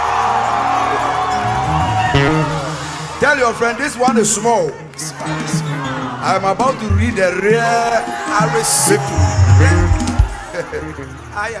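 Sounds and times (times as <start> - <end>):
audience shouting and cheering: 0.0 - 4.0, 4.8 - 11.0
speech: 3.3 - 10.0, 10.6 - 11.5.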